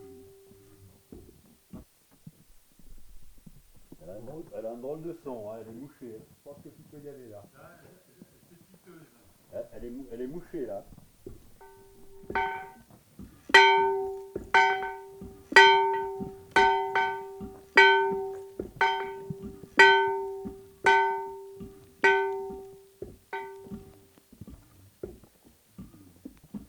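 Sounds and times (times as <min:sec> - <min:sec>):
snow-covered bell: 0:11.6 - 0:12.8, 0:13.6 - 0:24.0.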